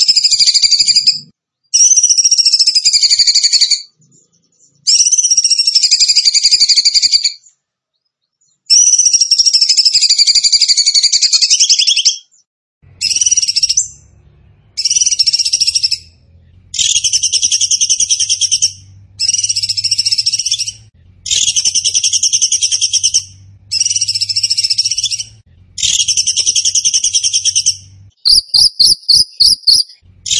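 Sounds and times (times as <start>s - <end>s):
bird song with high rapid pulsed trills: 0.0s - 3.9s, 4.8s - 7.4s, 8.7s - 12.4s, 13.0s - 14.1s, 14.7s - 30.3s
faint low hum: 12.8s - 28.4s.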